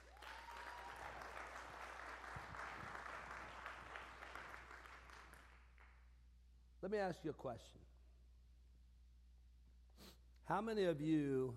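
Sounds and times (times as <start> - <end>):
audience applause: 0.0 - 5.9
speech: 6.8 - 7.9, 10.5 - 11.5.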